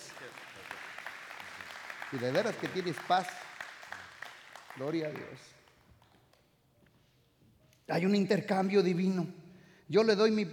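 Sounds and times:
applause: 0:00.0 - 0:06.4
speech: 0:02.1 - 0:03.4, 0:04.8 - 0:05.6, 0:07.9 - 0:10.5.

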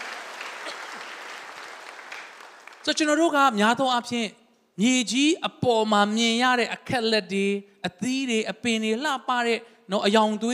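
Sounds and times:
congregation clapping hands in praise during a Sunday afternoon sermon: 0:00.0 - 0:03.4
speech: 0:02.8 - 0:10.5.

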